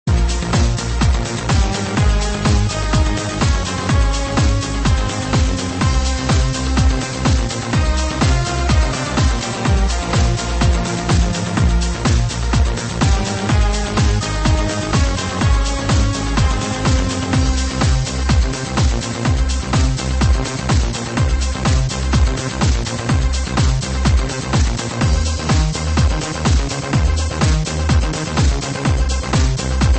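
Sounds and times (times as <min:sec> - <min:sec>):
Renoise remix music: 0:00.0 - 0:29.9.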